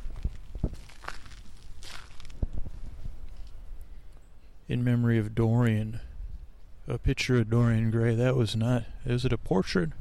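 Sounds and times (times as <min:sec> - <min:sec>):
footsteps on crushed stone in a small garden in Golden Gate Park: 0:00.0 - 0:03.6
quiet outdoor ambience in Golden Gate Park: 0:00.0 - 0:10.0
speech: 0:04.7 - 0:06.1, 0:06.9 - 0:10.0.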